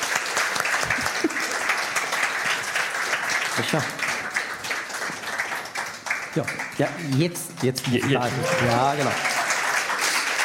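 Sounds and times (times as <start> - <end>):
audience applause: 0.0 - 10.4
speech: 3.6 - 4.0, 6.4 - 9.3.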